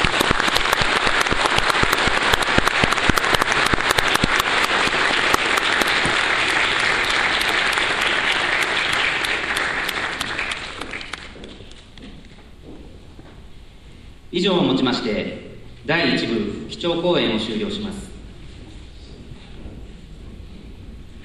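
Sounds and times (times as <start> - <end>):
audience applause: 0.0 - 12.0
speech: 14.8 - 18.1.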